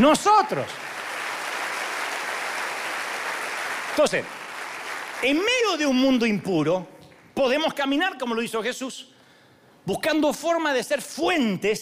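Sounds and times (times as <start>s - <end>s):
speech: 0.0s - 0.9s, 4.0s - 4.4s, 5.2s - 9.1s, 9.8s - 11.8s
audience applause: 0.5s - 5.8s.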